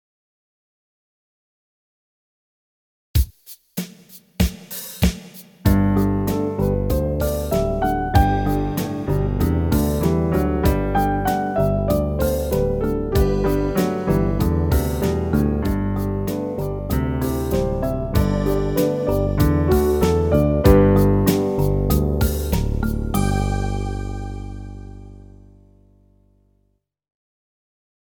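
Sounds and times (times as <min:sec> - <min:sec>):
slow piano study: 0:05.7 - 0:25.8.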